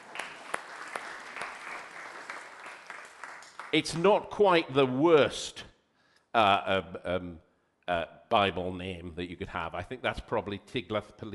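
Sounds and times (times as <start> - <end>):
audience clapping: 0.0 - 4.3
speech: 3.7 - 5.7, 6.3 - 11.3.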